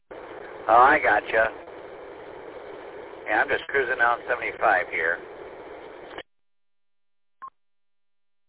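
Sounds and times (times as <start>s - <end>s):
hissy phone-line noise: 0.1s - 6.2s
speech: 0.7s - 1.6s, 3.3s - 5.3s.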